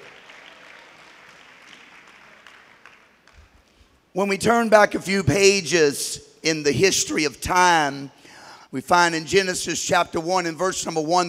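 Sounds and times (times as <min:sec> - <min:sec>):
audience clapping hands: 0:00.0 - 0:04.0
speech: 0:04.2 - 0:11.2.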